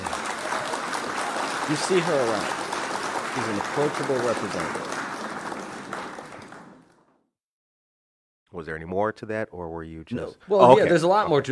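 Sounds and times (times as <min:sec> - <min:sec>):
audience clapping: 0:00.0 - 0:07.2
speech: 0:01.7 - 0:02.6, 0:03.4 - 0:04.9, 0:08.6 - 0:11.4.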